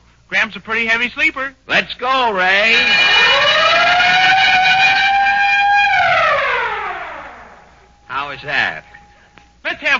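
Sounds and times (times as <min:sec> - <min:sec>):
speech: 0:00.4 - 0:03.6, 0:08.3 - 0:08.9, 0:09.6 - 0:09.9
siren: 0:02.6 - 0:09.4
bell: 0:07.6 - 0:09.7.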